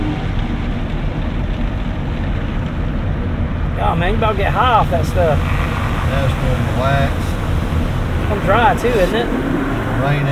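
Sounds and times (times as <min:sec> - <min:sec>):
deep mechanical rumble of car wash: 0:00.0 - 0:10.2
speech: 0:03.8 - 0:10.2
car wash spraying water and brushing over the windshield: 0:04.9 - 0:10.2.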